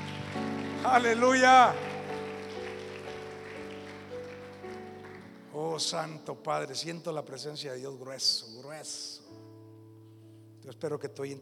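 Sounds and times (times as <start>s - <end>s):
audience applauding loudly: 0.0s - 6.0s
speech: 0.8s - 1.9s, 5.5s - 9.3s, 10.6s - 11.4s.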